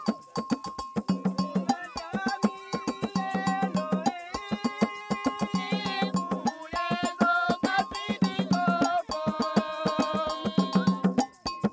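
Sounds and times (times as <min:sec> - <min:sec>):
ngonge double bell beat: 0:00.0 - 0:11.7
village choir singing in several voices: 0:01.7 - 0:11.0.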